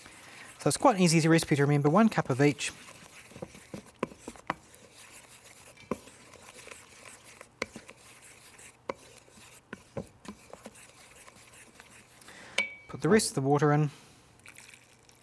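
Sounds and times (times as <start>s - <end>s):
utensil stirring thick chickpea flour batter in bowl: 0.0s - 13.3s, 14.4s - 15.2s
speech: 0.6s - 3.0s, 13.1s - 14.0s.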